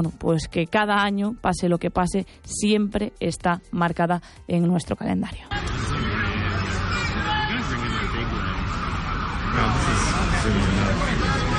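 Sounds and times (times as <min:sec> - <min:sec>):
speech: 0:00.0 - 0:06.0
ambulance sirens wailing after an attack: 0:05.5 - 0:11.5
crowd noise: 0:05.5 - 0:11.5
people shouting and screaming: 0:05.6 - 0:11.5.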